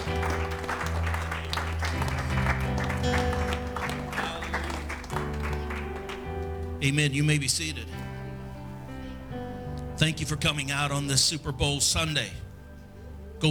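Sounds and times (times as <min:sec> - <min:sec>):
audience clapping: 0:00.0 - 0:06.7
sustained organ-like music: 0:00.0 - 0:13.4
speech: 0:06.8 - 0:08.0, 0:10.0 - 0:12.4.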